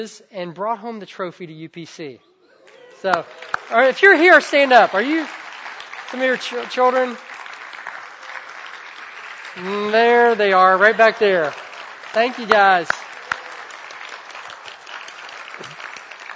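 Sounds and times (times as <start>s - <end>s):
speech: 0.0s - 2.3s, 3.0s - 5.4s, 6.1s - 7.3s, 9.6s - 13.0s
audience clapping: 2.6s - 16.3s.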